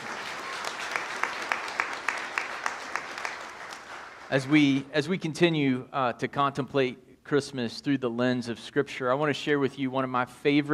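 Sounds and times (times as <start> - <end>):
audience applauding: 0.0 - 4.8
rhythmic sharper claps: 0.0 - 4.8
speech: 4.3 - 10.7.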